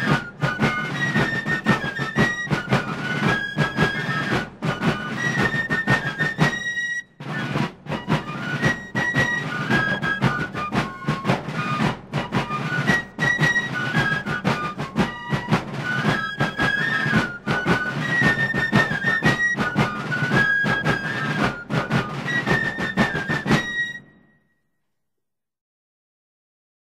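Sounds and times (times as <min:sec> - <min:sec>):
drum and bugle: 0:00.0 - 0:24.3.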